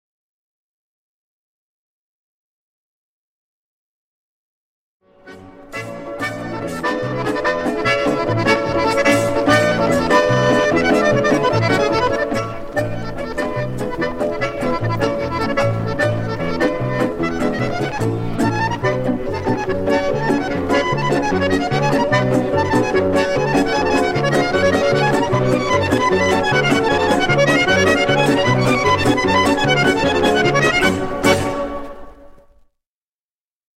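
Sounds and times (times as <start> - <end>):
cheerful melody: 5.1 - 32.6.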